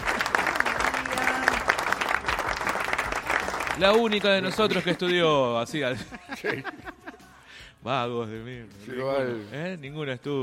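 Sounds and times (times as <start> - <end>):
audience applause: 0.0 - 5.0
speech: 3.8 - 6.9, 7.8 - 10.4
laughter: 4.4 - 7.4.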